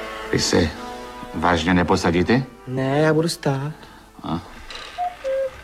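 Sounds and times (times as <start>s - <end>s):
speech: 0.3s - 4.5s
cuckoo clock calling: 4.8s - 5.6s.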